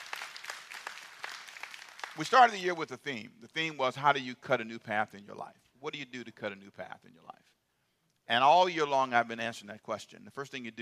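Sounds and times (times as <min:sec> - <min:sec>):
scattered audience hand claps: 0:00.0 - 0:02.4
speech: 0:02.2 - 0:07.6, 0:08.3 - 0:10.8.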